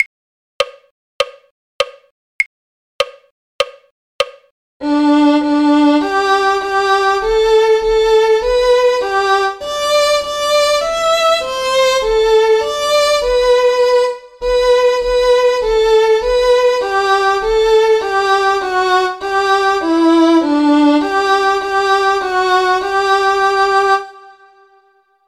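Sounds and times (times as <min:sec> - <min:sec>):
violin: 0:04.8 - 0:24.9.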